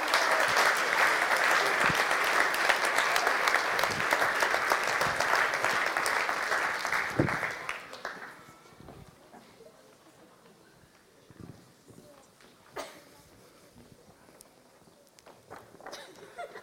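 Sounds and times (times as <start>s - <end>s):
large audience clapping: 0.0s - 8.7s
laughter: 15.9s - 16.6s.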